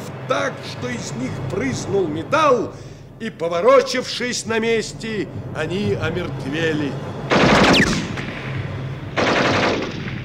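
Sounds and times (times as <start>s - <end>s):
speech: 0.3s - 7.9s
machine gun burst: 9.2s - 10.2s.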